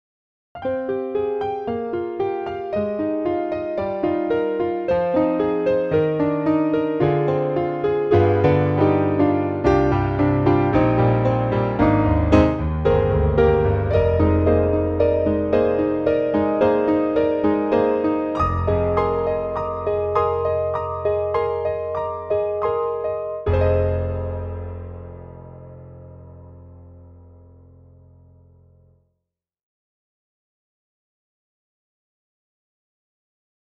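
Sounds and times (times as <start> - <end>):
piano: 0.6 - 29.1.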